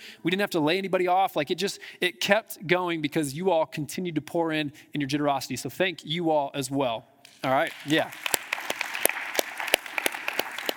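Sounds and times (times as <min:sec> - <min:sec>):
speech: 0:00.2 - 0:08.4
audience clapping and applause: 0:07.3 - 0:10.7.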